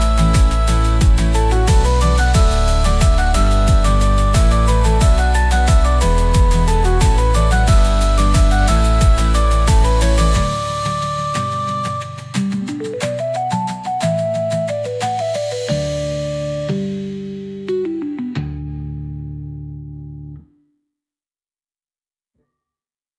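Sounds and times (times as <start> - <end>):
light Japanese festival pop music: 0.0 - 18.5.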